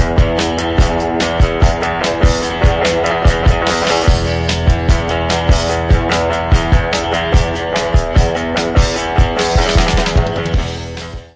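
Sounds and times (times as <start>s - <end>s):
guitar trio playing: 0.0s - 11.3s.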